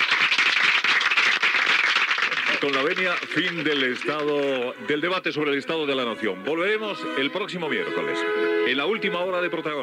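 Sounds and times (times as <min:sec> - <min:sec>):
studio audience applause at the close of a debate programme: 0:00.0 - 0:04.7
speech: 0:02.6 - 0:09.8.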